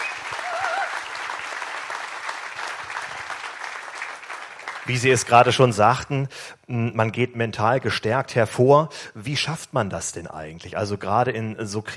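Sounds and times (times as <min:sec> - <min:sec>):
audience applause: 0:00.0 - 0:05.3
speech: 0:04.9 - 0:11.9.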